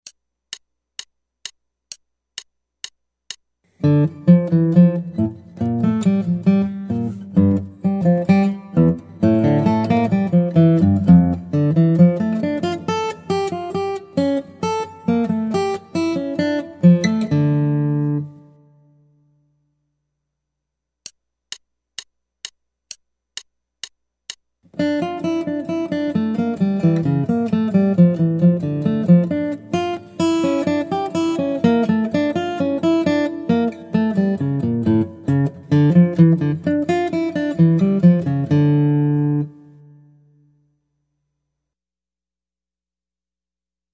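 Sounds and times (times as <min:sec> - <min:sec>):
guitar: 0:03.7 - 0:19.3, 0:24.7 - 0:40.6.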